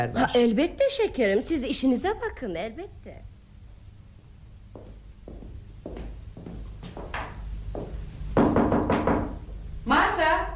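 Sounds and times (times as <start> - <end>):
speech: 0.0 - 3.3
knocking on a door: 7.0 - 9.5.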